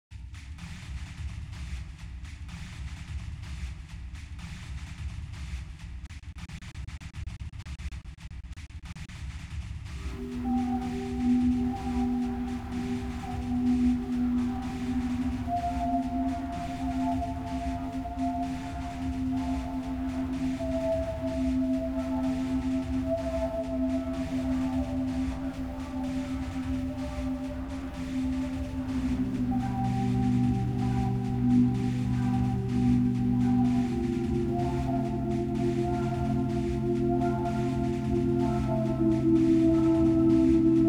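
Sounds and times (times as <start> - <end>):
distant synth pad: 10.0 - 40.8.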